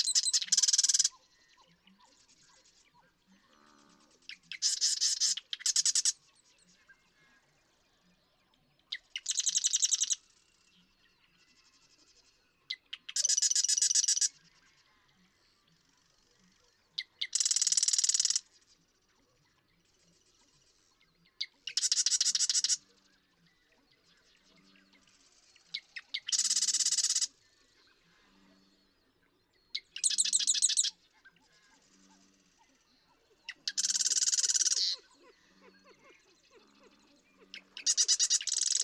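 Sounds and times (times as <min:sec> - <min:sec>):
Marsh Wren buzzy rattling song: 0:00.0 - 0:01.2, 0:04.3 - 0:06.2, 0:09.2 - 0:10.2, 0:13.1 - 0:14.4, 0:17.2 - 0:18.5, 0:21.7 - 0:22.8, 0:25.8 - 0:27.3, 0:29.8 - 0:30.9, 0:33.5 - 0:35.1, 0:37.5 - 0:38.8.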